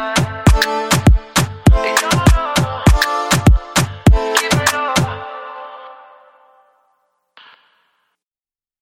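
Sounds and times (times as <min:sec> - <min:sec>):
drums remix: 0:00.0 - 0:05.1.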